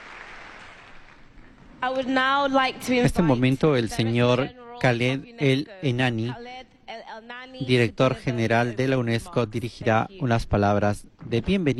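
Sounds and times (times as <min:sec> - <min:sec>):
faint applause welcoming Pope Leo XIV at UNESCO: 0:00.0 - 0:01.6
speech: 0:01.8 - 0:11.7.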